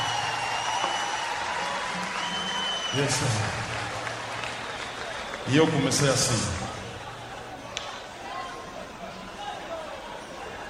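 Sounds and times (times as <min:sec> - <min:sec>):
audience applause: 0:00.0 - 0:07.1
speech: 0:02.9 - 0:03.7, 0:05.5 - 0:06.6.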